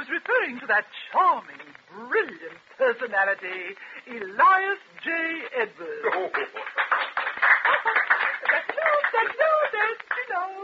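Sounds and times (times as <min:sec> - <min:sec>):
speech: 0:00.5 - 0:06.8
voices and laughter: 0:05.9 - 0:10.6
audience applause: 0:06.0 - 0:10.4.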